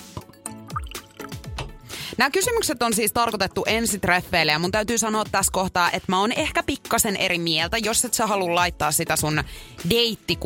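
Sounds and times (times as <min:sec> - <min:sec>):
liquid being poured into a glass: 0:00.7 - 0:01.4
speech: 0:02.2 - 0:10.4.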